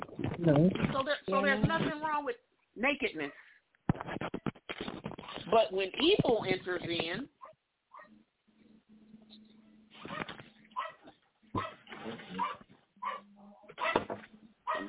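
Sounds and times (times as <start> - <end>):
speech: 0.4 - 3.5, 5.5 - 7.4
dog barking and whimpering in short uneven yelps and whines: 10.0 - 14.8.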